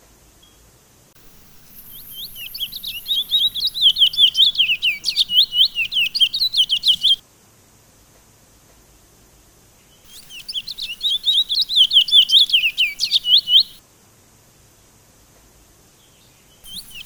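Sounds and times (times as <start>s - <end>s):
Sunda laughingthrush song of quick high-pitched slurred chirps: 1.2s - 7.2s, 10.1s - 13.8s, 16.7s - 17.0s.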